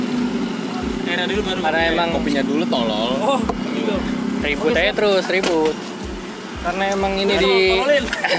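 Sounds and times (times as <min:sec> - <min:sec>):
roadside traffic, passing vehicles: 0:00.0 - 0:08.3
people chatting: 0:00.5 - 0:05.8, 0:06.6 - 0:08.3
speech: 0:01.2 - 0:05.9, 0:06.6 - 0:08.3
laughter: 0:07.9 - 0:08.3.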